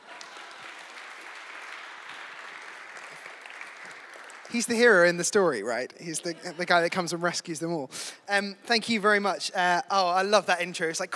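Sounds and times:
applause: 0.0s - 5.6s
speech: 4.5s - 11.1s.

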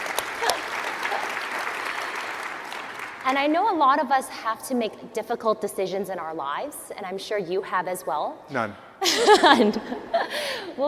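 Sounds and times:
audience applause: 0.0s - 3.4s
speech: 3.3s - 10.8s
laughter: 8.6s - 10.5s.

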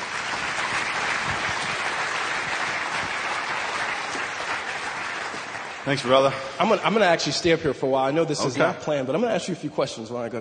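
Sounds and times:
audience applause welcoming a guest onto the stage: 0.0s - 7.4s
speech: 5.8s - 10.3s.

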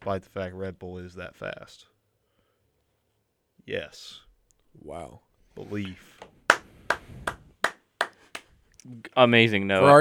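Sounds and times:
speech: 0.0s - 1.9s, 3.7s - 6.4s, 8.8s - 9.9s
applause sound effect: 6.5s - 8.5s.

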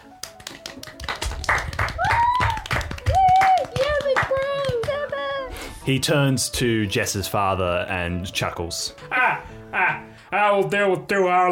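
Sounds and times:
round of applause, many hands clapping: 0.0s - 5.5s
speech: 5.9s - 11.5s.

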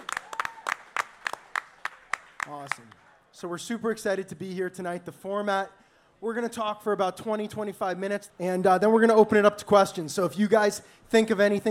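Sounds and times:
audience applause: 0.0s - 3.0s
speech: 2.5s - 11.6s.

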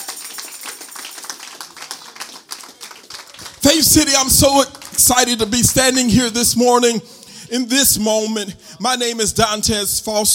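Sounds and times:
audience hand clapping: 0.0s - 6.0s
speech: 3.7s - 10.3s.

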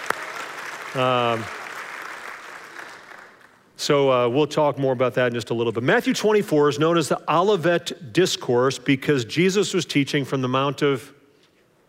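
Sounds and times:
applause: 0.0s - 3.7s
speech: 0.9s - 1.6s, 3.8s - 11.2s.

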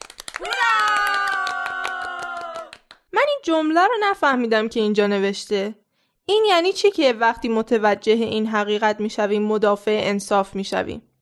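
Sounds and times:
audience clapping: 0.0s - 3.1s
speech: 3.4s - 11.1s.

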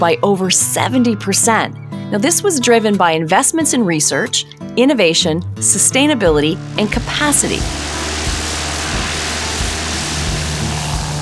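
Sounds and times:
speech: 0.0s - 8.2s
propeller aircraft flying from Vancouver Island landing in Oliver, British Columbia: 6.0s - 11.2s.

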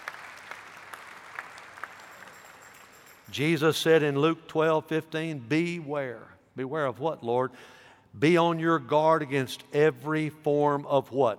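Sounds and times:
audience applauding: 0.0s - 3.2s
speech: 3.3s - 11.3s.

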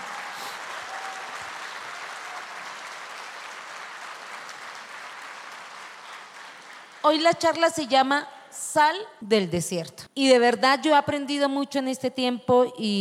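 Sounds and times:
audience applause: 0.0s - 7.1s
speech: 7.0s - 12.9s.

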